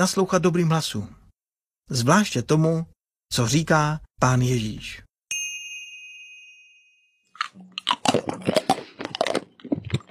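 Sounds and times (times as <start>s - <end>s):
speech: 0.0s - 1.2s, 1.9s - 5.0s
bell-like ding: 5.3s - 7.3s
loud crunchy chewing into the microphone: 7.4s - 10.0s.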